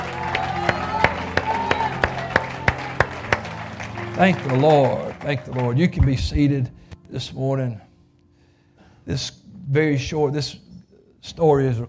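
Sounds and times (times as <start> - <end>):
audience applauding: 0.0 - 6.5
speech: 4.2 - 7.8, 9.0 - 10.6, 11.2 - 11.8.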